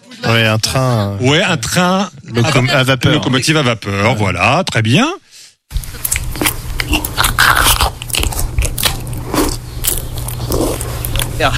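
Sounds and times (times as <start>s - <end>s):
speech: 0.3s - 5.2s, 11.4s - 11.5s
person crunching food: 5.7s - 11.5s.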